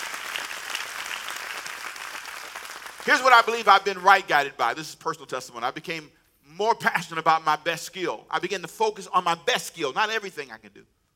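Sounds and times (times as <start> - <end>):
audience clapping hands: 0.0 - 4.0
speech: 3.1 - 11.0.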